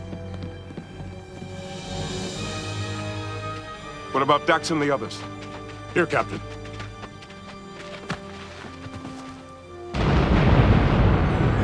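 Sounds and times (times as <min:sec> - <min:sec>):
speech: 0:04.2 - 0:05.4, 0:06.0 - 0:06.6
explosive charge blowing up a gateway: 0:10.0 - 0:11.6.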